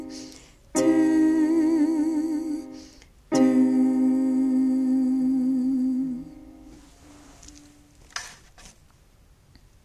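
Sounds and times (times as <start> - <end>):
soprano singing: 0.0 - 6.8.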